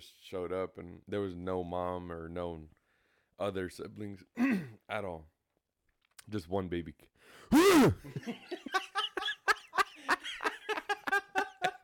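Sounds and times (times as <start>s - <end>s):
speech: 0.0s - 2.8s, 3.4s - 5.3s, 6.3s - 8.9s
harsh throat clearing close to the microphone: 4.4s - 4.8s
laughter: 8.0s - 11.8s.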